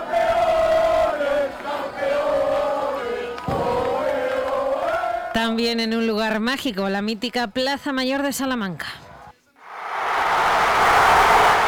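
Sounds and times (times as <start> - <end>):
crowd celebrating victory in the Parque del Salón in Palencia: 0.0 - 5.3, 9.6 - 11.6
speech: 5.4 - 9.0.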